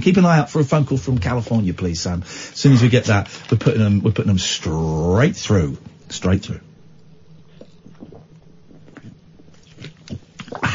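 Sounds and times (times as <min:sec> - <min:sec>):
speech: 0:00.0 - 0:06.7
drinking fizzy Coca-Cola from a bottle: 0:07.3 - 0:10.7.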